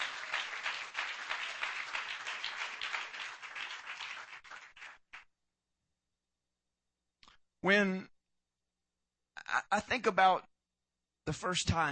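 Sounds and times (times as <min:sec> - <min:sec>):
audience clapping hands: 0:00.0 - 0:05.3
speech: 0:07.6 - 0:08.1, 0:09.7 - 0:10.5, 0:11.3 - 0:11.9.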